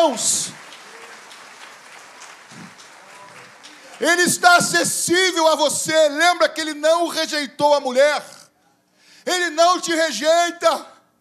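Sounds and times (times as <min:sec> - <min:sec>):
speech: 0:00.0 - 0:00.8, 0:04.0 - 0:08.4, 0:09.2 - 0:10.9
audience applauding: 0:00.0 - 0:04.6.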